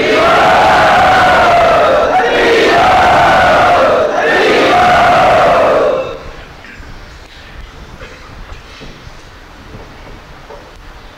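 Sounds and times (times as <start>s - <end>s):
audience at a devotional gathering cheering and shouting: 0.0s - 6.4s.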